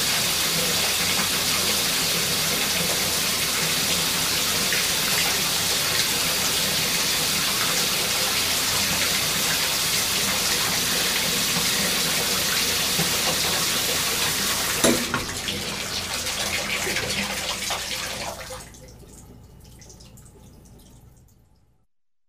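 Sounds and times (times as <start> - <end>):
water running in a shower: 0.0 - 21.2
water tap turning on: 12.9 - 13.6, 14.7 - 15.6.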